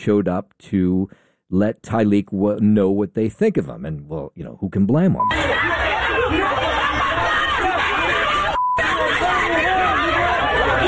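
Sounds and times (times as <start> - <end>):
speech: 0.0 - 7.7
angry crowd screaming and yelling: 5.3 - 10.8.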